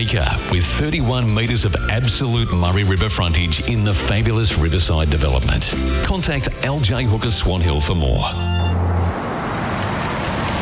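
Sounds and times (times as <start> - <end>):
speech: 0.0 - 8.6
car slowing down as it passes a house: 8.4 - 10.6.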